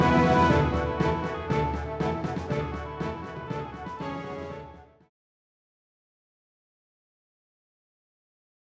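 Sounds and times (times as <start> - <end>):
fanfare: 0.0 - 5.0.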